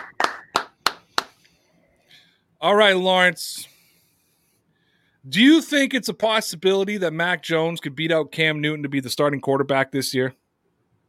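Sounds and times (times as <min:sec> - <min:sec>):
hand claps: 0:00.0 - 0:01.4
speech: 0:02.6 - 0:03.7, 0:05.2 - 0:10.4.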